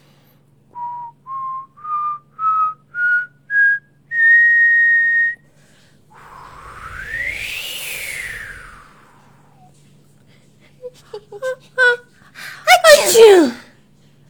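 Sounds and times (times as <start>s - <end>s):
person whistling: 0.8s - 5.4s, 6.4s - 9.3s
voice imitating the north wind: 6.2s - 9.7s, 12.7s - 13.6s
sneeze-like bursts: 12.7s - 13.7s.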